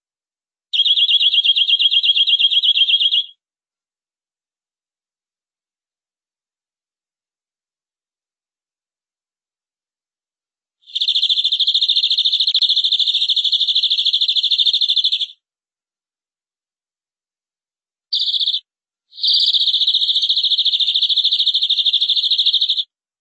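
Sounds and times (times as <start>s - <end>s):
canary trilling: 0.7s - 3.3s, 10.9s - 15.4s, 18.1s - 18.6s, 19.2s - 22.9s.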